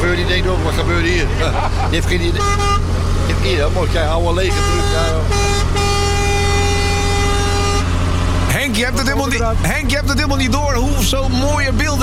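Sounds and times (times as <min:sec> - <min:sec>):
low engine rumble: 0:00.0 - 0:12.0
speech: 0:00.3 - 0:06.0, 0:08.6 - 0:12.0
laughter: 0:01.0 - 0:02.4
truck air horn blaring: 0:02.2 - 0:03.4, 0:04.2 - 0:08.5.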